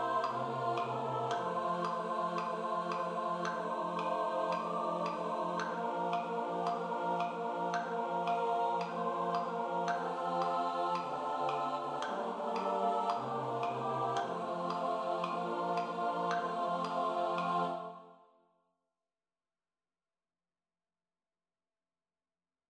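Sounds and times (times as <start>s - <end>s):
SATB four-part choir singing: 0.0s - 18.2s.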